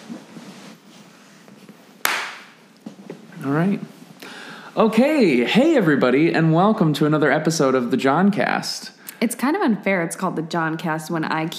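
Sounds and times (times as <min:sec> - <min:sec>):
clapping: 0:02.0 - 0:02.5
speech: 0:03.4 - 0:04.0, 0:04.8 - 0:11.5.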